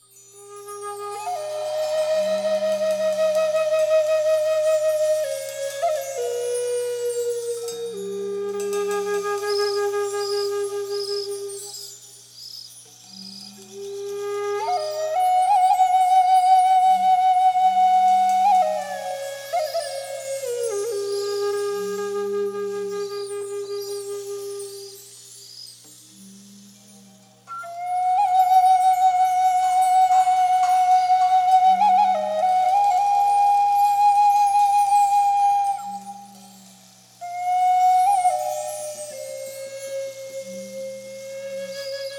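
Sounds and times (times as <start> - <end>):
wooden flute playing: 0.0 - 12.2, 13.0 - 25.2, 26.3 - 42.1.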